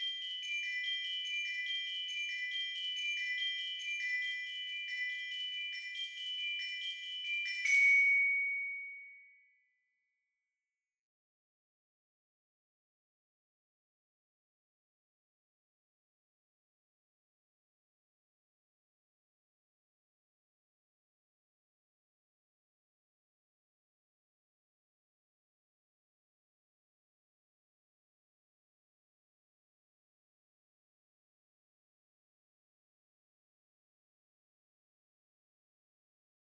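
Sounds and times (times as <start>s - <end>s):
glockenspiel: 0.0s - 9.9s.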